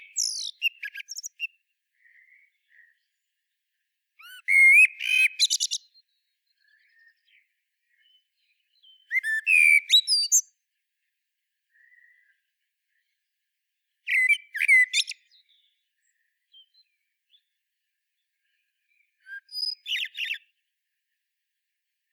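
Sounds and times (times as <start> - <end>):
common blackbird song: 0.0 - 3.3, 4.2 - 10.5, 14.1 - 17.6, 18.4 - 20.6.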